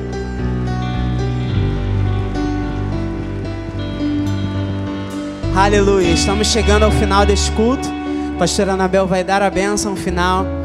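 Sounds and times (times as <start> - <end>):
audience applauding: 1.0 - 8.2
speech: 5.6 - 10.6.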